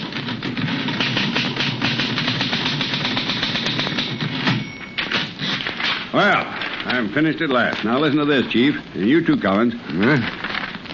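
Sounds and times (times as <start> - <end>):
typewriter keys clacking: 0.0 - 7.1
speech: 6.2 - 10.4.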